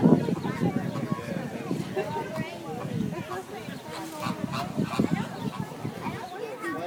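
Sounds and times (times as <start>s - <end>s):
birds at a zoo: 0.1s - 6.7s.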